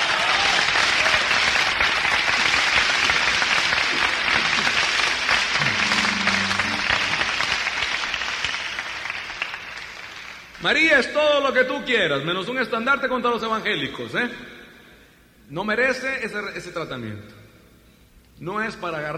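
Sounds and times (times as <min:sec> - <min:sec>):
audience applause: 0:00.0 - 0:10.4
speech: 0:10.6 - 0:14.6, 0:15.5 - 0:17.4, 0:18.4 - 0:19.1.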